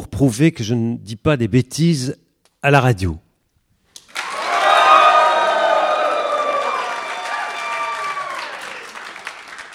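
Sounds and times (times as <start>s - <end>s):
speech: 0.2s - 3.2s
audience applause: 4.1s - 9.7s
crowd wild cries of ecstasy or anger: 4.2s - 9.0s.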